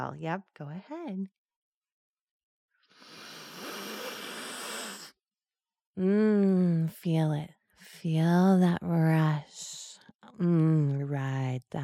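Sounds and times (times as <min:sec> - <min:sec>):
speech: 0:00.0 - 0:01.4, 0:06.0 - 0:09.6, 0:10.4 - 0:11.8
sniffing through one nostril: 0:02.9 - 0:05.2.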